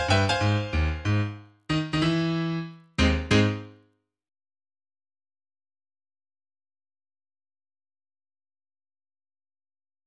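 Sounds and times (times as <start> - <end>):
American swing music: 0.0 - 3.7.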